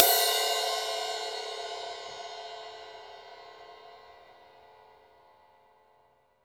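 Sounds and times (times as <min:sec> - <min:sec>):
dry ride cymbal: 0:00.0 - 0:04.0.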